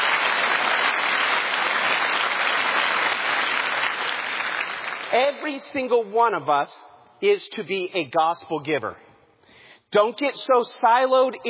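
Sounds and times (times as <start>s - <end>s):
audience round of applause: 0.0s - 5.2s
speech: 5.1s - 9.0s, 9.9s - 11.4s.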